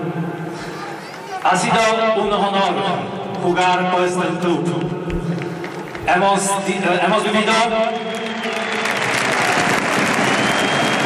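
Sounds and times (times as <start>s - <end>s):
speech: 0.1s - 0.3s, 1.4s - 5.4s, 6.1s - 8.6s
stadium crowd applause: 0.5s - 1.7s, 7.6s - 11.0s.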